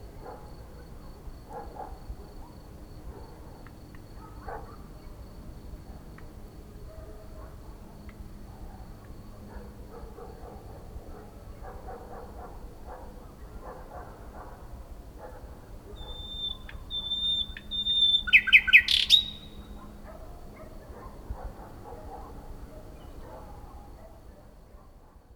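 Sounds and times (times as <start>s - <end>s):
common nightingale singing: 16.0s - 19.8s.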